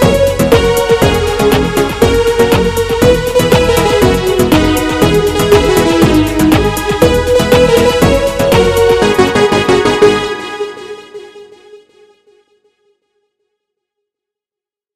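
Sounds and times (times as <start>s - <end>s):
funk music: 0.0s - 11.2s.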